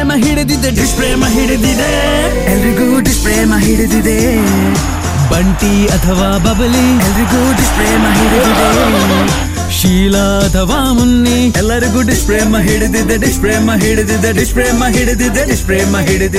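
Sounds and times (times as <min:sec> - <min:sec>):
male Kannada singer singing: 0:00.0 - 0:16.3
laughter: 0:04.3 - 0:09.6.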